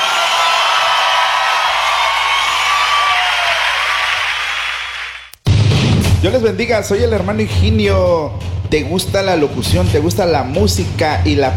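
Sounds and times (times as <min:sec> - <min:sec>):
loud applause: 0:00.0 - 0:05.3
speech: 0:06.2 - 0:11.5.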